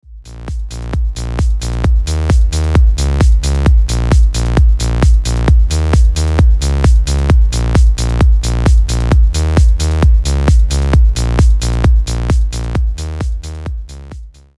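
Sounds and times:
sawtooth wave tone: 0.2 - 14.2.

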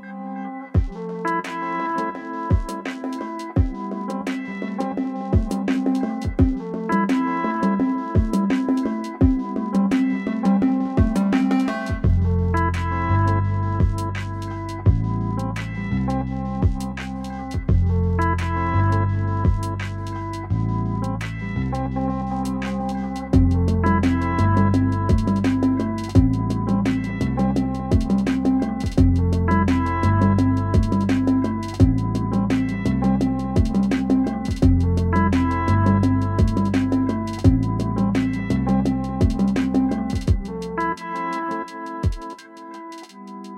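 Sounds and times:
Novation Circuit Rhythm drum machine rhythm: 0.8 - 15.8, 16.6 - 21.5, 22.3 - 43.5.

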